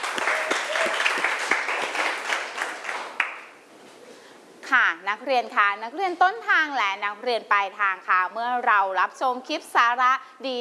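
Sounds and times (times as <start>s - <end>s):
audience crowd clapping: 0.0s - 3.6s
speech: 5.0s - 10.6s.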